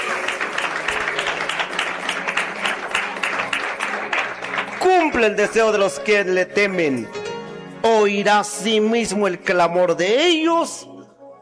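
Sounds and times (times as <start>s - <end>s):
audience applause: 0.0s - 6.0s
speech: 5.1s - 7.2s, 7.8s - 10.9s.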